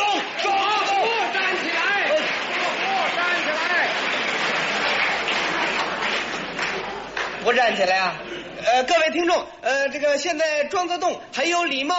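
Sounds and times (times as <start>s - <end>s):
stadium audience cheering and applauding: 0.0s - 7.5s
speech: 7.5s - 11.9s.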